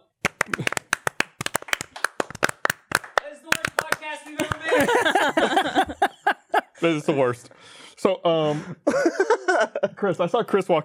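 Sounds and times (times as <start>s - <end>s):
hand claps: 0.0s - 5.3s
speech: 4.2s - 5.8s, 6.8s - 10.8s
laughter: 4.3s - 7.0s, 8.5s - 10.1s.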